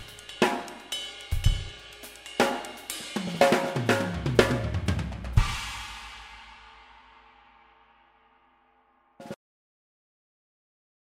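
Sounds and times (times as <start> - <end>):
rhythm track: 0.0 - 5.8.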